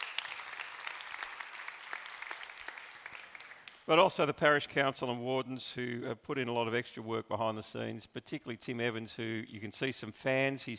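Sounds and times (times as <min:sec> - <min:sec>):
audience clapping: 0:00.0 - 0:04.3
speech: 0:03.9 - 0:10.7.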